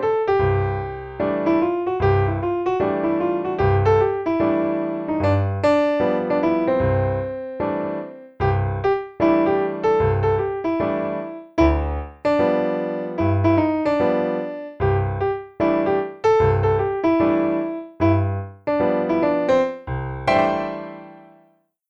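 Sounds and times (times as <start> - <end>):
solo piano: 0.0 - 21.5.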